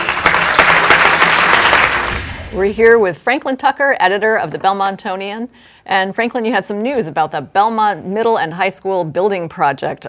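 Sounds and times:
applause: 0.0 - 2.2
speech: 2.5 - 10.0.

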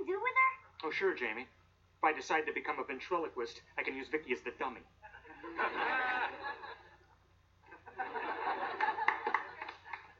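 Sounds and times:
speech: 0.8 - 6.4
laughter: 5.0 - 7.1, 7.7 - 10.1
hands clapping: 8.6 - 10.1.

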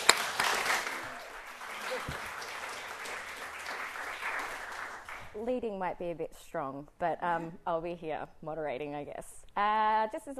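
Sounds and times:
studio audience applauding to welcome a discussion panel: 0.0 - 5.4
speech: 5.4 - 10.3.

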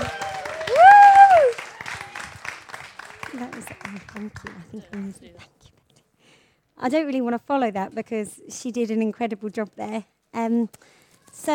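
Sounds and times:
audience cheering: 0.0 - 4.2
audience applause: 0.0 - 5.1
speech: 3.9 - 5.7, 6.8 - 11.5.

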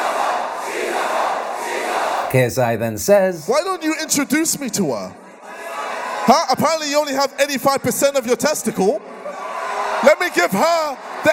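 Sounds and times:
crowd chanting at a boxing event: 0.0 - 3.5
speech: 2.3 - 5.2, 6.3 - 9.2, 10.0 - 11.3.

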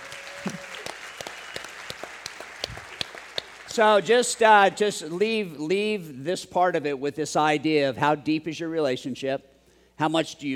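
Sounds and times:
audience applause: 0.0 - 4.1
speech: 3.7 - 10.5.

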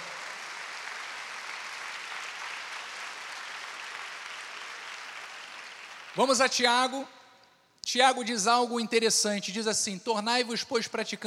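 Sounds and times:
audience applause: 0.0 - 6.4
speech: 6.2 - 7.2, 7.9 - 11.2.

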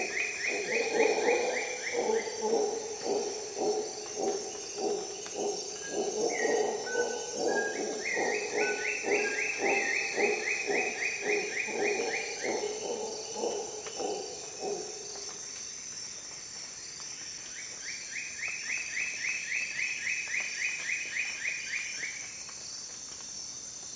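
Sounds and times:
insects buzzing: 0.0 - 23.9
howler monkey howls: 0.5 - 14.8.

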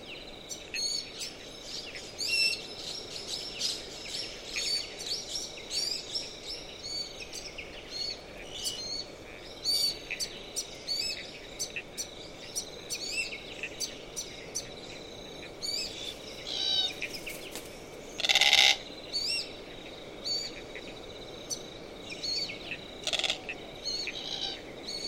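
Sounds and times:
cricket chorus: 0.0 - 25.0
Glossy Black Cockatoo creaking calls: 18.2 - 18.8, 23.0 - 24.6.

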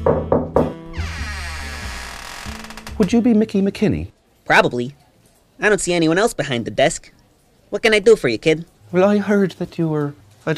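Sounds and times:
speech: 0.0 - 0.4, 3.0 - 5.0, 5.6 - 10.5
knocking on a door: 0.0 - 0.8
door creaking open: 0.1 - 3.2.

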